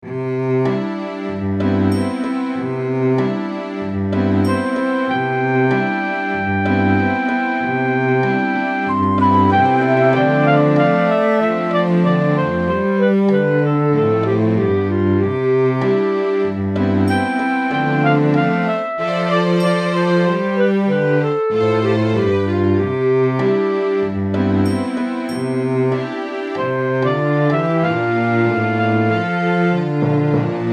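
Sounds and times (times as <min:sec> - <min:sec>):
inspirational music: 0:00.0 - 0:30.7.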